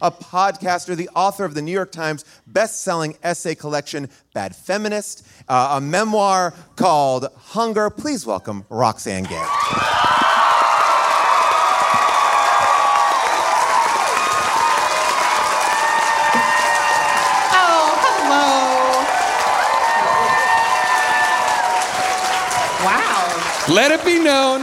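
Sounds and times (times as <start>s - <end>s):
speech: 0.0s - 10.0s, 23.7s - 24.6s
audience standing ovation applause at a live show: 9.2s - 24.6s.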